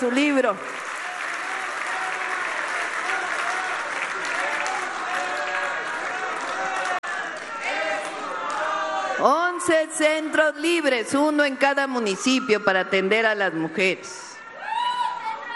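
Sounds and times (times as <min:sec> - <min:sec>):
speech: 0:00.0 - 0:00.9, 0:09.2 - 0:14.3
audience applause: 0:00.0 - 0:09.2.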